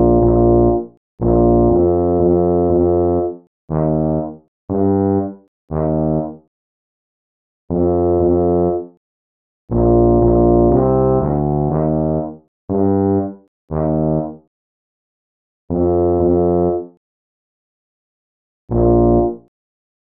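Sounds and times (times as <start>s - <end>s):
tuba: 0.0s - 6.5s, 7.7s - 9.0s, 9.7s - 14.5s, 15.7s - 17.0s, 18.7s - 19.5s.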